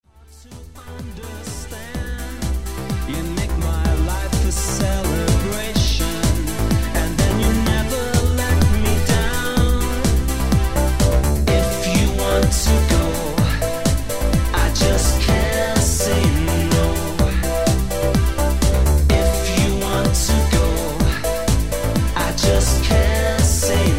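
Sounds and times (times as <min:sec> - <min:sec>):
electronic music: 0:00.0 - 0:23.9.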